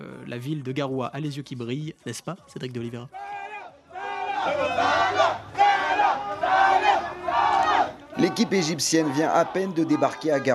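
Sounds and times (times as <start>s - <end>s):
speech: 0.3s - 3.4s, 4.4s - 5.4s, 8.2s - 10.5s
noisy enthusiastic welcoming crowd cheering: 3.2s - 10.5s.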